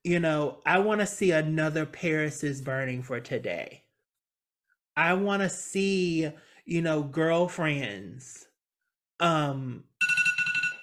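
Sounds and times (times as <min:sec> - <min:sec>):
speech: 0:00.0 - 0:03.8, 0:05.0 - 0:08.5, 0:09.2 - 0:09.9
phone alarm ringing: 0:10.0 - 0:10.8.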